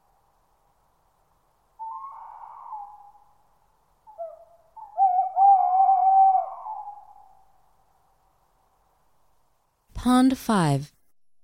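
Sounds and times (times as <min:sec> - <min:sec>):
tawny owl hooting: 0:01.8 - 0:07.7
speech: 0:10.0 - 0:11.0.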